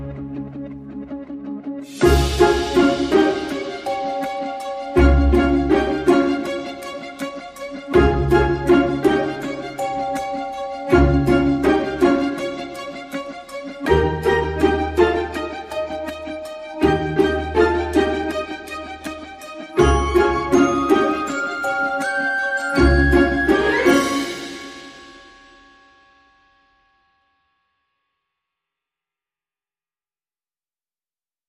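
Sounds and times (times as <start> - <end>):
percussion: 1.8 - 26.9.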